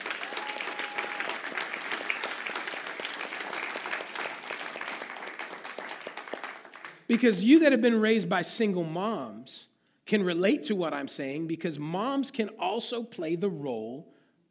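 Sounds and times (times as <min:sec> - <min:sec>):
audience applauding and cheering for single moms: 0:00.0 - 0:07.1
speech: 0:07.1 - 0:14.4.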